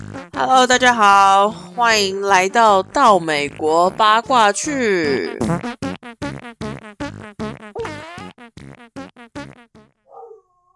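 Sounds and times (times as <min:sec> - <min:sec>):
speech: 0:00.4 - 0:05.8
dog barking: 0:10.1 - 0:10.6.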